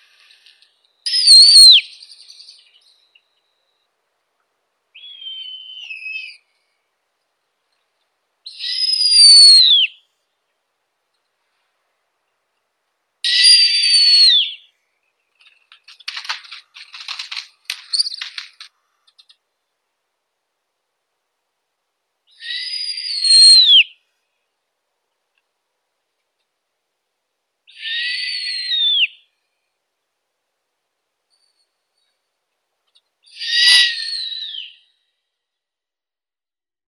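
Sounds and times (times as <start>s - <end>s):
snowy owl Nyctea scandiaca calling: 0.0s - 3.0s, 5.0s - 6.6s, 8.4s - 10.0s, 13.3s - 14.7s, 22.3s - 24.0s, 27.7s - 29.4s, 33.2s - 35.0s.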